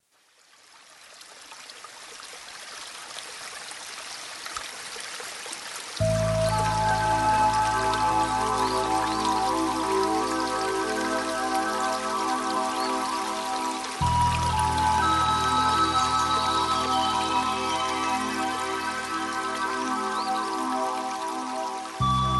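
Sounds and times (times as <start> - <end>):
stream: 0.0 - 22.3
relaxing melody: 6.0 - 22.3.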